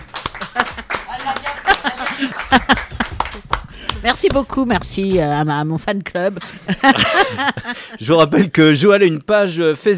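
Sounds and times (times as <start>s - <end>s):
small group clapping: 0.0s - 5.6s
laughter: 0.4s - 1.0s, 1.6s - 3.4s, 6.4s - 8.0s
speech: 2.2s - 2.8s, 4.0s - 9.9s.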